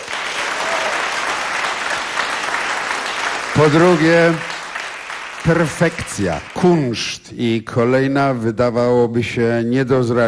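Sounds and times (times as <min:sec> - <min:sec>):
audience applause: 0:00.0 - 0:07.0
speech: 0:03.6 - 0:04.5, 0:05.4 - 0:10.2.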